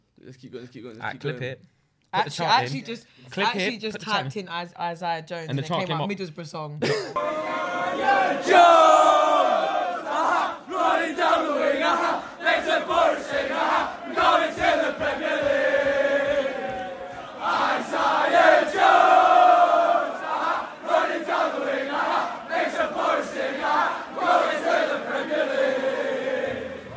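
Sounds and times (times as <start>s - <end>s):
speech: 0.2s - 9.7s
football crowd chanting a player's name: 7.2s - 26.9s.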